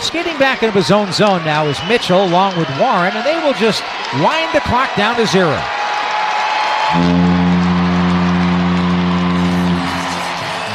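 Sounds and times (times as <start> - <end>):
speech: 0.1 - 5.8, 6.9 - 7.2
arena foghorn blowing in Anaheim: 6.9 - 10.7.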